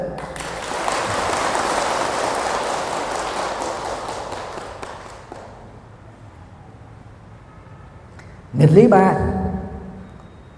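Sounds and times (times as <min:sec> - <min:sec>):
crowd clapping: 0:00.0 - 0:05.8
speech: 0:08.6 - 0:09.4.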